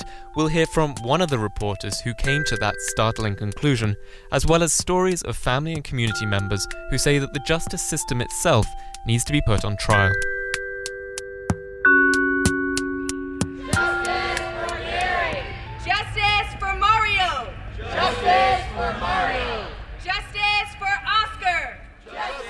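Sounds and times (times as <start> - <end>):
sustained musical tones: 0.0 - 4.7, 6.0 - 19.6
speech: 0.4 - 10.3
overlapping shouts: 13.6 - 15.6, 17.2 - 22.4
crowd chanting at a street demonstration: 13.6 - 15.7, 17.2 - 20.2, 22.0 - 22.4.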